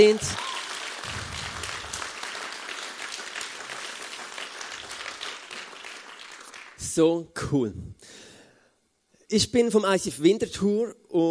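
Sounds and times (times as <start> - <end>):
speech: 0.0 - 0.4, 6.9 - 8.2, 9.3 - 11.2
audience applause: 0.0 - 6.8.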